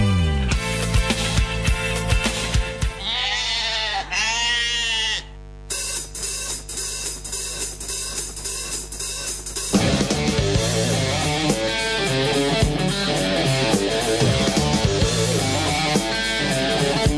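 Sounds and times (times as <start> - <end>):
steady musical backing with percussive hits: 0.0 - 3.1, 5.7 - 17.1
sheep bleating: 3.0 - 5.4.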